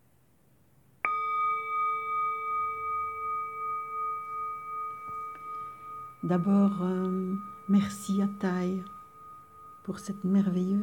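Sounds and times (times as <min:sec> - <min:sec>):
meditation bell ringing: 0:01.0 - 0:10.8
speech: 0:06.2 - 0:09.0, 0:09.9 - 0:10.8.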